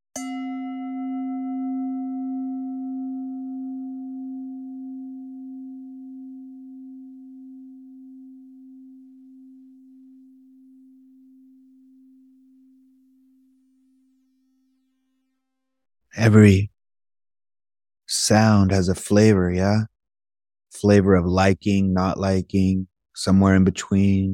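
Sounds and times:
meditation bell ringing: 0.2 - 13.9
speech: 16.2 - 16.7, 18.1 - 19.9, 20.7 - 24.3.

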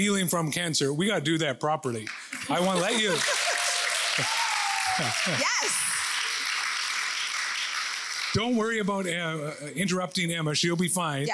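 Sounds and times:
speech: 0.0 - 3.4, 4.2 - 4.4, 5.0 - 5.9, 8.3 - 11.3
audience clapping: 2.0 - 10.2
laughter: 2.4 - 6.4.

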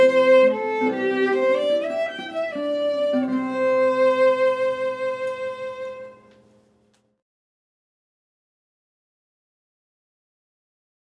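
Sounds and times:
violin playing a guitar arrangement: 0.0 - 6.5.

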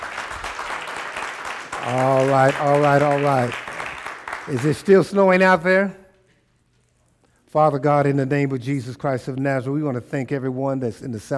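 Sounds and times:
crowd hand clapping: 0.0 - 5.2
speech: 1.8 - 3.6, 4.5 - 6.0, 7.5 - 11.3.

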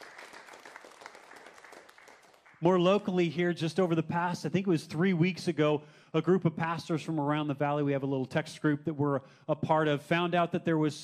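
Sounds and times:
audience applause: 0.0 - 2.8
speech: 2.6 - 11.0.

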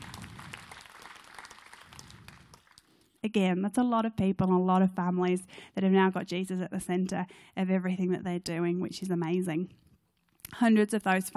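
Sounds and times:
audience clapping: 0.0 - 3.0
speech: 3.2 - 9.8, 10.5 - 11.3.

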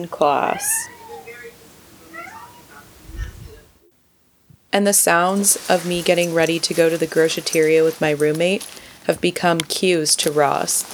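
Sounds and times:
speech: 0.0 - 1.0, 4.7 - 10.9
cat meowing: 0.5 - 3.4.

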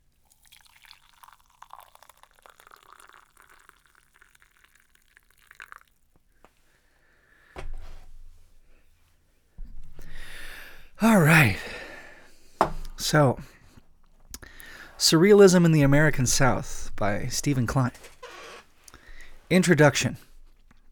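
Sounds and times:
coffee pouring into a Waffle House mug: 0.2 - 6.2
speech: 11.0 - 11.7, 13.1 - 13.6, 15.0 - 18.0, 19.5 - 20.3
mug or pot set down: 12.6 - 13.0.

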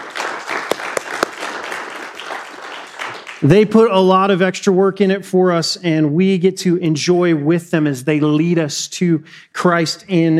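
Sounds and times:
crowd applause: 0.0 - 3.5
speech: 3.4 - 10.3.

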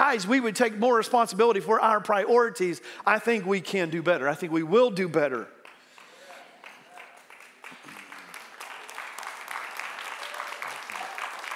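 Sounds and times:
speech: 0.1 - 5.6
audience clapping: 5.6 - 11.5.

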